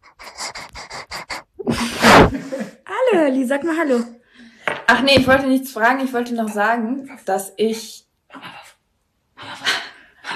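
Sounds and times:
dog panting: 0.0s - 2.2s
speech: 3.1s - 4.2s, 4.9s - 8.5s.

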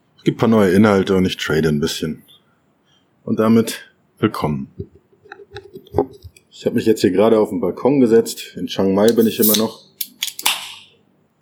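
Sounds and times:
speech: 0.2s - 2.3s, 3.2s - 9.8s
beer bottle being opened: 9.1s - 10.9s.

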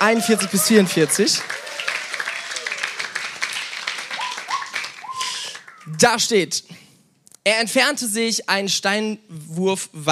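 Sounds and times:
speech: 0.0s - 1.8s, 5.9s - 6.8s, 7.4s - 10.1s
audience applause: 0.0s - 6.0s.

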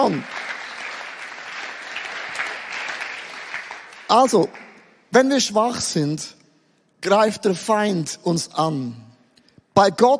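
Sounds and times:
speech: 0.0s - 0.4s, 4.1s - 6.4s, 7.0s - 9.1s, 9.8s - 10.1s
audience applauding: 0.0s - 4.8s.

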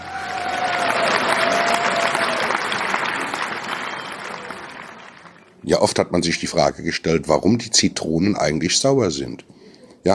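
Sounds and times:
audience clapping: 0.0s - 5.6s
speech: 5.7s - 10.1s.

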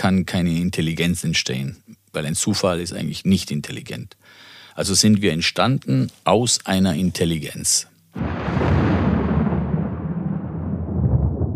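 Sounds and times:
speech: 0.0s - 8.9s
thunder sound effect: 8.2s - 11.5s.

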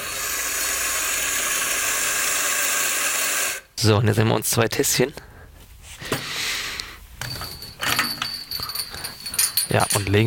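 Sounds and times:
coffee grinder grinding 18.7 grams of coffee for espresso: 0.0s - 3.6s
speech: 3.8s - 5.3s, 9.7s - 10.2s.

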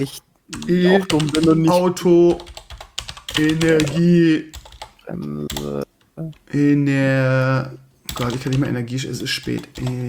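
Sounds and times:
speech: 0.0s - 2.5s, 3.4s - 10.0s
computer keyboard typing a search into Google: 0.5s - 6.4s, 8.1s - 10.0s.

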